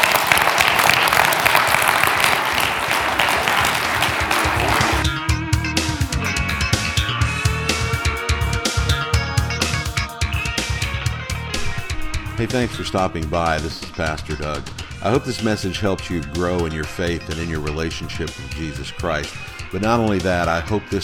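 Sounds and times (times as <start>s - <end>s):
crowd clapping: 0.0s - 5.2s
music with sharp percussive hits and sustained tones: 3.5s - 15.5s
speech: 12.4s - 21.0s.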